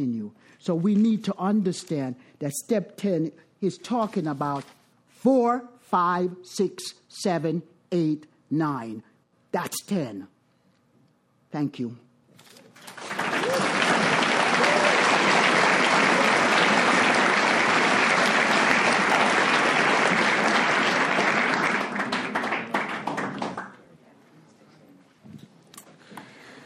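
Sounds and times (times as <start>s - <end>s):
speech: 0.0s - 10.3s, 11.5s - 12.0s
audience applause: 12.8s - 23.8s.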